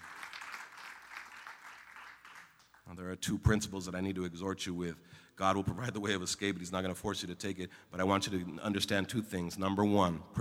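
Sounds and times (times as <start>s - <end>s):
audience clapping hands: 0.0s - 2.9s
speech: 2.9s - 10.4s.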